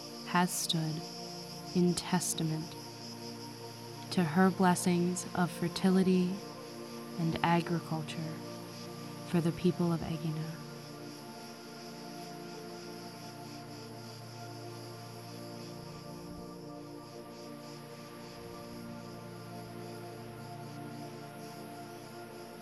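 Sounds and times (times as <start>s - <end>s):
cicadas chirping in the pines: 0.0s - 22.6s
speech: 0.3s - 2.8s, 4.1s - 6.5s, 7.2s - 8.5s, 9.3s - 10.6s.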